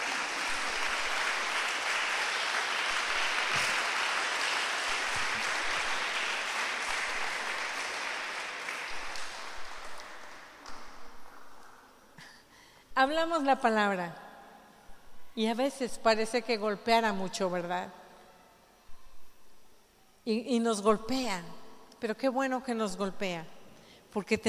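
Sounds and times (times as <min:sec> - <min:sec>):
crowd applause: 0:00.0 - 0:11.8
speech: 0:13.0 - 0:14.2, 0:15.4 - 0:18.0, 0:20.2 - 0:24.4.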